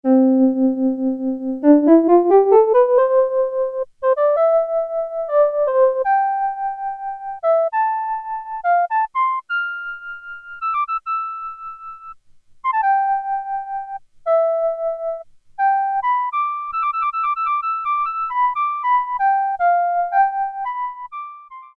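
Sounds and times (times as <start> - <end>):
Kawai SX-240 synthesizer flute: 0.1 - 21.7.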